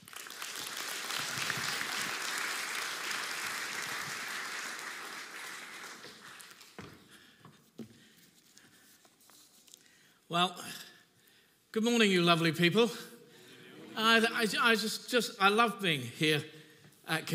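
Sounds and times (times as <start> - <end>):
church congregation clapping for a guest speaker at a Sunday service: 0.0 - 6.8
speech: 10.3 - 10.8, 11.7 - 13.1, 14.0 - 17.3.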